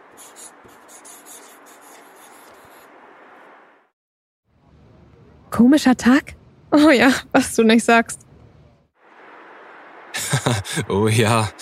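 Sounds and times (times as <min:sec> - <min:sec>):
pen scratching across a paper note: 0:00.0 - 0:03.0
speech: 0:05.5 - 0:08.2, 0:10.6 - 0:11.5
laughter: 0:10.2 - 0:11.5.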